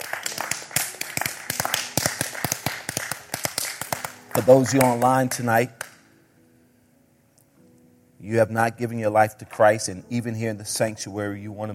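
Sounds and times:
audience clapping hands: 0:00.0 - 0:06.0
speech: 0:04.4 - 0:05.8, 0:08.3 - 0:11.7.

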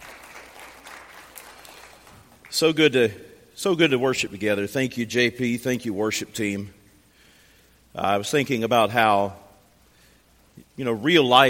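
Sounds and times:
audience applauding: 0:00.0 - 0:02.5
speech: 0:02.5 - 0:06.8, 0:07.9 - 0:09.4, 0:10.8 - 0:11.4.

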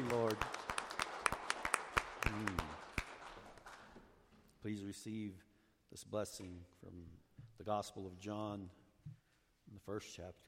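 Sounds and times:
audience clapping hands in praise: 0:00.0 - 0:03.9
speech: 0:04.6 - 0:10.4.

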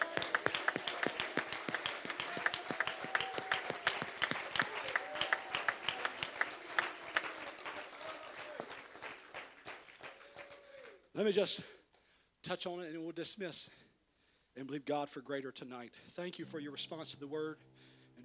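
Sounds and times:
audience clapping: 0:00.0 - 0:11.0
speech: 0:11.2 - 0:11.8, 0:12.4 - 0:13.8, 0:14.6 - 0:17.9.

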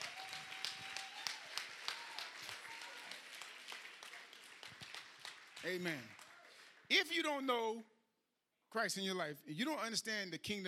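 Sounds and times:
hand clapping: 0:00.0 - 0:06.8
speech: 0:05.6 - 0:06.2, 0:06.9 - 0:07.9, 0:08.7 - 0:10.6.

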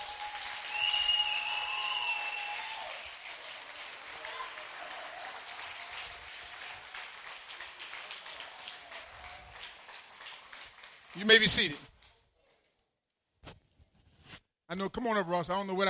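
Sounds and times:
audience hand clapping: 0:00.0 - 0:12.2
speech: 0:11.2 - 0:11.9, 0:14.7 - 0:15.8.

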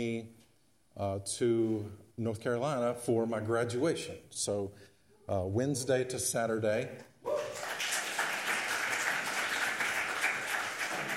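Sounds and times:
speech: 0:00.0 - 0:00.4, 0:01.0 - 0:07.1
audience applause: 0:07.4 - 0:11.1.

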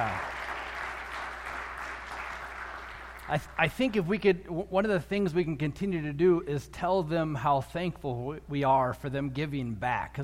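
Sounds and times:
crowd applause: 0:00.0 - 0:03.4
speech: 0:03.3 - 0:10.2.

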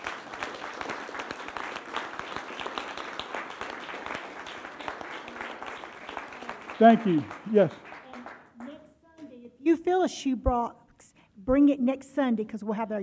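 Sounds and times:
audience applause: 0:00.0 - 0:08.8
speech: 0:06.8 - 0:07.9, 0:10.0 - 0:10.8, 0:11.4 - 0:13.0.

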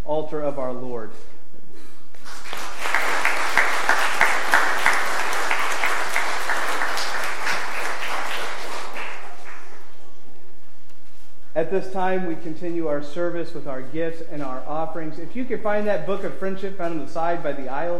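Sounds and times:
speech: 0:00.1 - 0:01.4, 0:11.6 - 0:17.9
audience applause: 0:02.2 - 0:10.1.

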